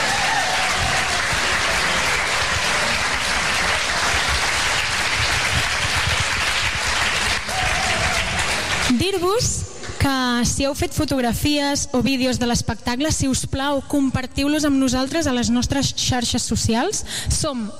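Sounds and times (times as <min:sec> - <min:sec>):
audience applause for the technicians: 0:00.0 - 0:09.0
speech: 0:10.5 - 0:17.7.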